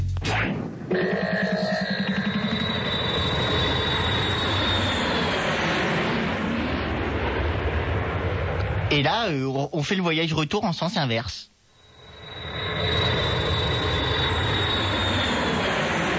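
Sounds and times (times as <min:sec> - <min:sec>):
airplane engine roar of a flight to Los Angeles: 0:00.8 - 0:08.9, 0:11.9 - 0:16.1
speech: 0:00.9 - 0:01.5, 0:08.9 - 0:11.5.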